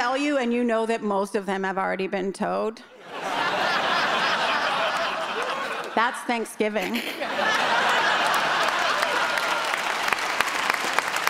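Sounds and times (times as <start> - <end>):
speech: 0.2 - 3.4, 6.0 - 7.9
laughter: 3.0 - 10.1
audience clapping: 4.1 - 6.2, 7.3 - 11.2.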